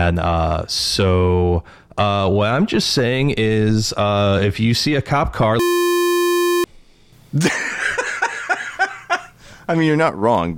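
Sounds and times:
speech: 0:00.0 - 0:06.0, 0:07.3 - 0:07.8, 0:09.7 - 0:10.5
buzzy censor beep: 0:05.6 - 0:06.7
rhythmic bursts of laughter: 0:07.4 - 0:09.3.

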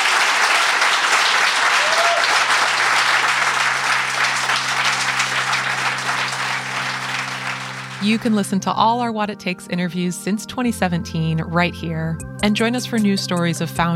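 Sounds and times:
audience applause: 0:00.0 - 0:08.4
speech: 0:08.0 - 0:13.9.

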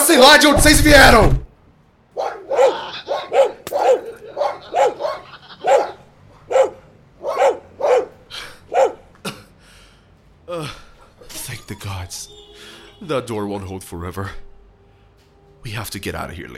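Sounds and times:
speech: 0:00.1 - 0:01.5, 0:11.7 - 0:12.4, 0:13.0 - 0:14.4, 0:15.6 - 0:16.5
large fierce dogs barking: 0:02.1 - 0:09.1.

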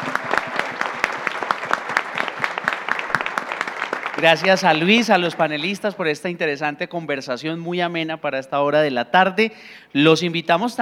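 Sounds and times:
audience applauding for panel guests: 0:00.0 - 0:06.0
speech: 0:04.2 - 0:10.8.

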